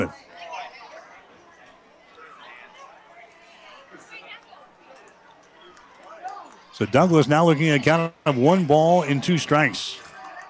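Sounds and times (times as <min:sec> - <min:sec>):
crowd chatter at a softball game: 0:00.0 - 0:10.4
crowd exclamations: 0:02.1 - 0:10.4
speech: 0:06.8 - 0:10.0.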